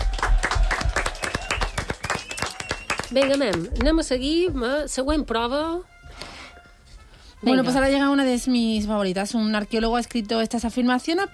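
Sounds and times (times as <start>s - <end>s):
crowd applauding: 0.0s - 3.9s
speech: 3.1s - 5.9s, 7.4s - 11.3s.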